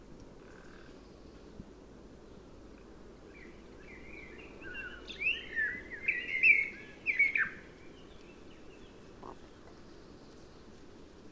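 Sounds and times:
faint steady hiss: 0.0 - 11.3
common blackbird warbling song: 3.3 - 10.5.

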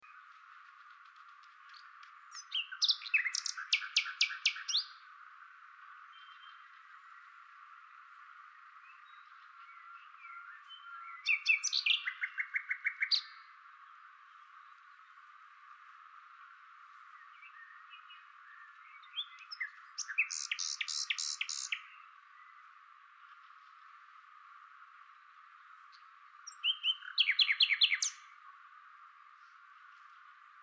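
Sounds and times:
Common nightingale singing: 1.7 - 5.0, 6.0 - 15.0, 17.1 - 22.7, 25.9 - 28.5.

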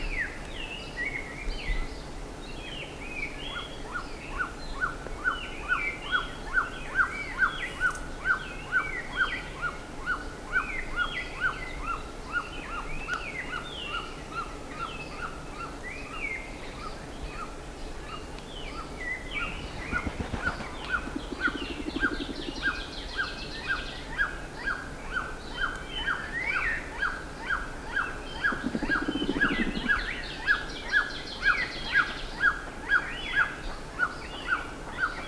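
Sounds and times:
higher chirps and slurred whistles from other birds: 0.0 - 35.2
clipped chevron bird note repeated: 19.4 - 32.6.

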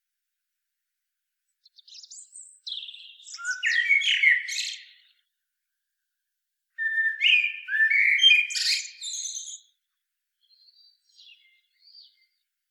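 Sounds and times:
common blackbird Turdus merula song: 1.6 - 5.5, 6.8 - 12.6.

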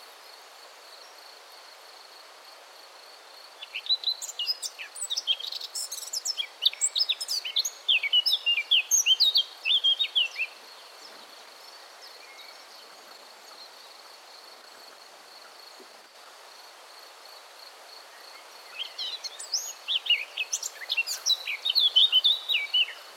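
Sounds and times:
Eurasian blackcap Sylvia atricapilla warbling song: 3.6 - 11.2, 18.7 - 23.1.

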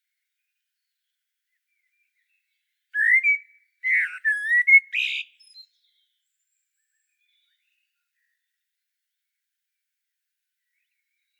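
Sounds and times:
common blackbird fluty whistles and warbling: 3.0 - 5.6.

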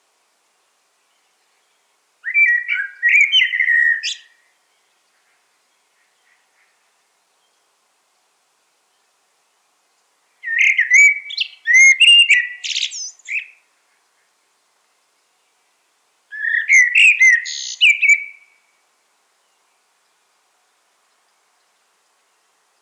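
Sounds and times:
common blackbird singing: 1.6 - 4.4, 10.4 - 13.6, 16.3 - 18.6.

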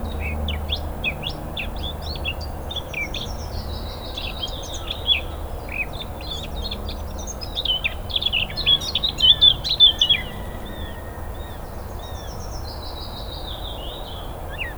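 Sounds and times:
Eurasian blackcap scratchy warbling song with fluty whistles: 0.1 - 14.7.

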